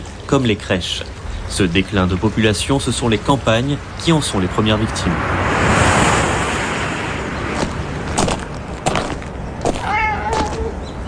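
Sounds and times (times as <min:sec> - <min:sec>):
steady wash of outdoor noise: 0:00.0 - 0:11.0
speech: 0:00.3 - 0:05.5
stray cat meowing: 0:09.8 - 0:10.8.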